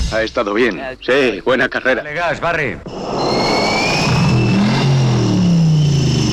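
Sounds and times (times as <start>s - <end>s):
speech: 0.2s - 3.5s
supercharged V8 car engine revving, about 600 horsepower: 2.9s - 6.3s.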